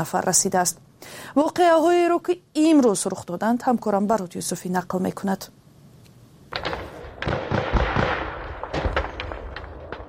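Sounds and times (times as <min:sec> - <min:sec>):
speech: 0:00.0 - 0:05.6
artillery shots at Tajikistan Kyrgyzstan border: 0:06.5 - 0:10.0
gunfire at Tajikistan Kyrgyzstan border: 0:06.5 - 0:10.0.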